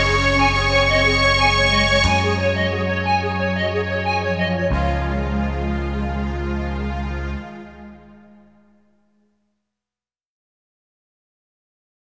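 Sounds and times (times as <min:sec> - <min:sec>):
synthesizer: 0:00.0 - 0:08.2.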